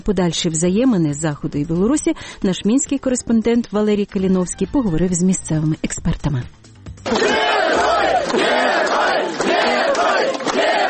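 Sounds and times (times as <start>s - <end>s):
speech: 0.0s - 7.3s
large crowd shouting welcoming chants: 7.1s - 10.8s.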